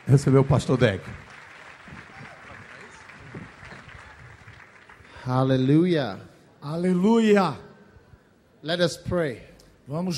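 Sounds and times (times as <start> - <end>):
audience applause: 0.0 - 5.7
speech: 0.1 - 1.2, 5.3 - 7.7, 8.6 - 10.1.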